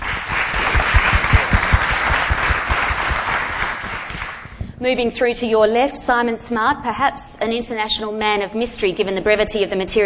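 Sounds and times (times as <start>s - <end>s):
audience applause welcoming a panel member: 0.0s - 4.4s
speech: 4.8s - 10.0s.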